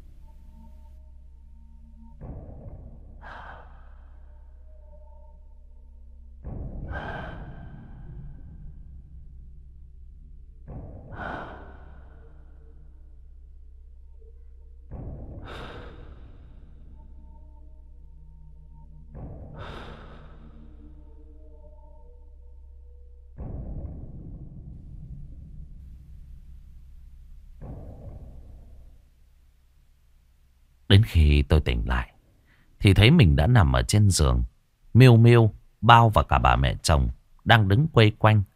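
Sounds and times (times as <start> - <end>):
labored wheezy heavy breathing: 3.2 - 4.3, 6.8 - 8.4, 11.1 - 12.6, 15.4 - 16.8, 19.6 - 20.8
speech: 30.9 - 32.1, 32.8 - 38.5.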